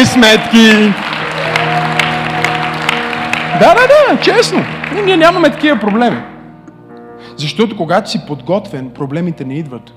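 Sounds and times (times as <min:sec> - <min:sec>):
speech: 0:00.0 - 0:01.0, 0:03.6 - 0:06.3, 0:07.4 - 0:09.9
audience applause: 0:00.0 - 0:06.2.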